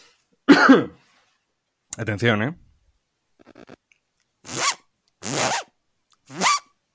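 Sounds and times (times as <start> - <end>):
speech: 0.6 - 1.0, 2.0 - 2.6, 3.4 - 3.8
voice imitating a zipper with the lips: 3.4 - 3.8, 4.4 - 5.7, 6.3 - 6.7.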